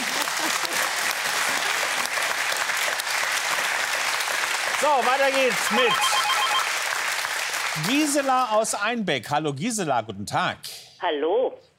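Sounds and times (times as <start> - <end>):
audience applause: 0.0 - 8.7
speech: 4.8 - 6.2, 7.8 - 11.7.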